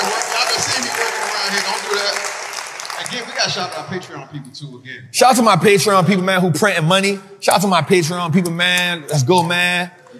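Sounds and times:
audience applause: 0:00.0 - 0:04.2
speech: 0:03.4 - 0:10.1.

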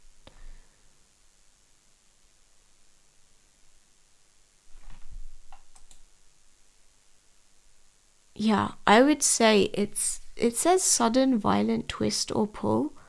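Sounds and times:
hiss: 0:00.0 - 0:13.0
computer mouse clicks through definitions in an online dictionary: 0:04.8 - 0:06.0
speech: 0:08.4 - 0:13.0.

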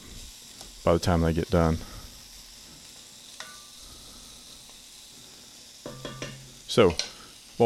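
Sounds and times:
carrots frying in a pan: 0:00.0 - 0:07.6
speech: 0:00.8 - 0:02.0, 0:06.8 - 0:07.6
utensil clinking against pan: 0:05.8 - 0:07.1.

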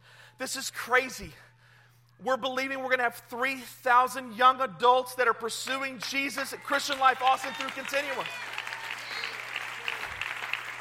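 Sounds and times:
speech: 0:00.4 - 0:01.5, 0:02.2 - 0:08.5
audience clapping: 0:05.6 - 0:10.7.

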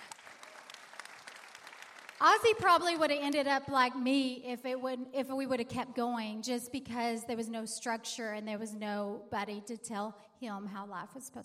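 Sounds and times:
applause: 0:00.0 - 0:03.4
speech: 0:02.2 - 0:11.4.

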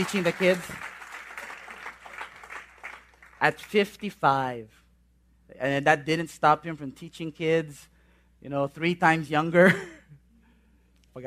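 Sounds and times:
speech: 0:00.0 - 0:00.9, 0:03.4 - 0:04.8, 0:05.5 - 0:10.0
group of people clapping in tribute: 0:00.0 - 0:04.0.

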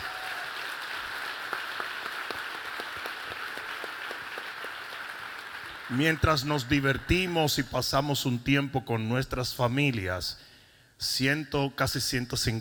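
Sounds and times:
crowd applause: 0:00.0 - 0:07.4
speech: 0:05.9 - 0:12.5.

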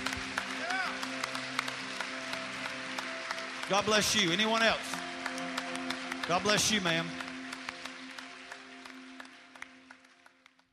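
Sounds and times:
audience applauding: 0:00.0 - 0:10.7
speech: 0:03.7 - 0:05.0, 0:06.3 - 0:07.2.

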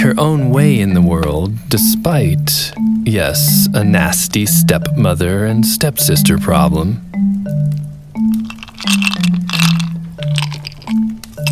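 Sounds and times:
speech: 0:00.1 - 0:07.8
chewing on ice: 0:08.4 - 0:11.5.

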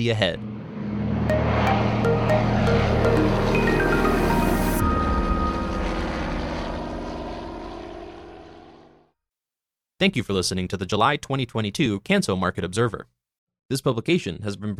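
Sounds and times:
speech: 0:00.0 - 0:00.5, 0:10.0 - 0:13.1, 0:13.7 - 0:14.7
Canso aircraft propeller engines droning: 0:00.4 - 0:08.9.

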